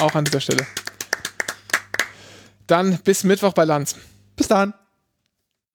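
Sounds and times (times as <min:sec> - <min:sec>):
speech: 0:00.0 - 0:00.8, 0:02.7 - 0:04.8
hand clapping: 0:00.0 - 0:02.3.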